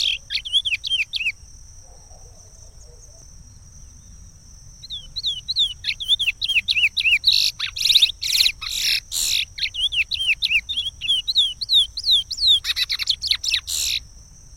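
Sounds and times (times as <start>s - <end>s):
chestnut-bellied seed finch singing: 0.0s - 1.3s, 4.8s - 14.0s.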